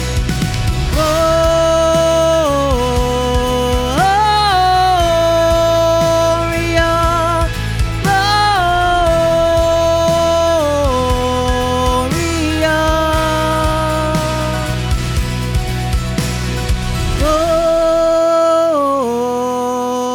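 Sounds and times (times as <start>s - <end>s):
Christmas choir singing with alto lead: 0.2s - 20.0s.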